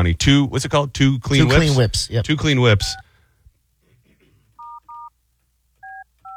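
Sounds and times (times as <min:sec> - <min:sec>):
speech: 0:00.0 - 0:03.0
telephone keypad dialing tones: 0:05.8 - 0:06.3.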